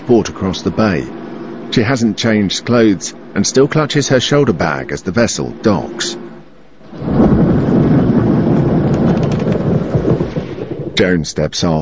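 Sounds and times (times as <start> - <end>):
speech: 0.1 - 6.2, 11.0 - 11.7
steady rain: 6.7 - 11.2
nighttime thunderstorm thunder rumbling: 6.8 - 11.3.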